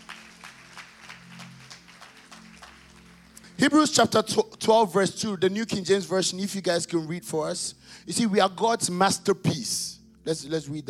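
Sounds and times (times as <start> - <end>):
audience clapping hands: 0.0 - 4.2
speech: 3.6 - 10.8.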